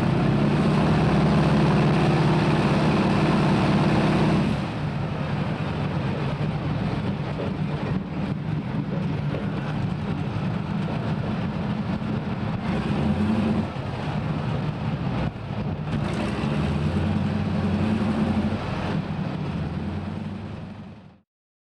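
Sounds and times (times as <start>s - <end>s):
airplane heard from inside: 0.0s - 21.2s.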